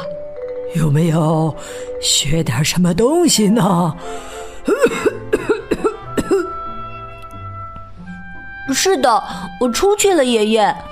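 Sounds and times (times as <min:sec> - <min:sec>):
speech: 0:00.7 - 0:05.5, 0:08.7 - 0:10.9
coughing: 0:04.6 - 0:06.6.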